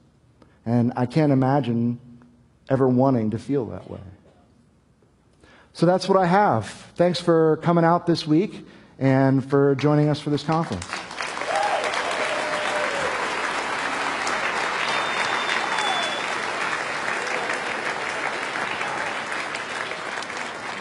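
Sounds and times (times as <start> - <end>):
speech: 0.7 - 2.0, 2.7 - 4.1, 5.8 - 11.1
audience applause: 10.6 - 20.7.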